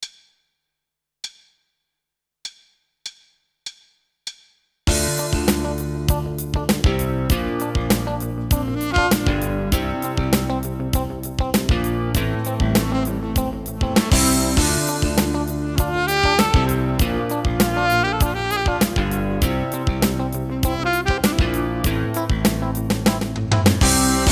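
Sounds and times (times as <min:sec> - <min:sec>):
rock funk music: 0:04.9 - 0:24.3.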